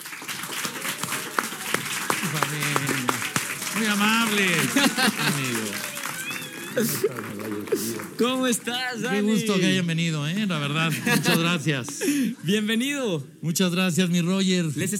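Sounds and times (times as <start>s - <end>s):
audience applause: 0.0s - 9.8s
laughter: 2.0s - 8.5s, 10.7s - 12.4s
speech: 2.3s - 2.9s, 3.8s - 5.9s, 6.8s - 14.9s.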